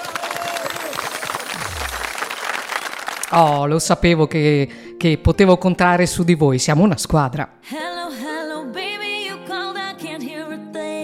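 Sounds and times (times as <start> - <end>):
applause: 0.0 - 3.6
speech: 3.3 - 7.9.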